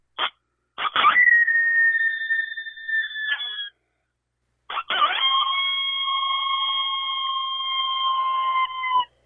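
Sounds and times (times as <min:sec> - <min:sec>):
coyote howls blown on a small predator call: 0:00.8 - 0:03.7, 0:04.7 - 0:09.1.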